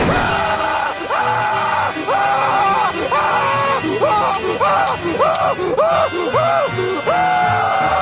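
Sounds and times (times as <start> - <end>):
laughter: 0.0 - 8.0
person screaming: 0.1 - 8.0.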